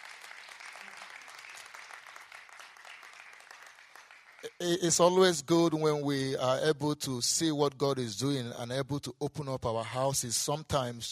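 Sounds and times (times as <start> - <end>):
audience clapping: 0.0 - 5.0
speech: 4.4 - 11.1.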